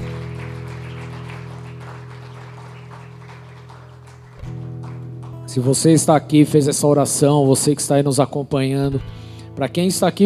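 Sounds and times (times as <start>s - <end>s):
audience applauding: 0.0s - 6.0s
speech: 5.5s - 10.2s.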